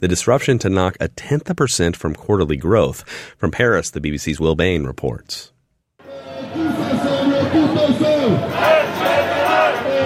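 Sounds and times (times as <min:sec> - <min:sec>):
speech: 0:00.0 - 0:05.5
protest crowd chanting in street: 0:06.1 - 0:10.0.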